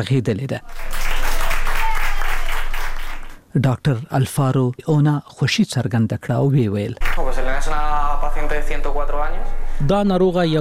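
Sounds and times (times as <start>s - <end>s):
speech: 0.0s - 1.0s, 3.6s - 10.5s
doctors and nurses in Madrid applauding a recovered patient: 0.6s - 3.4s, 7.0s - 7.3s.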